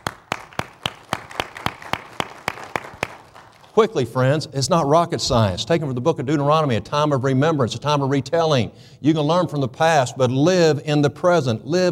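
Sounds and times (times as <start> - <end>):
audience applauding: 0.0 - 3.8
sharp rhythmic claps: 0.0 - 4.0
speech: 3.8 - 11.8.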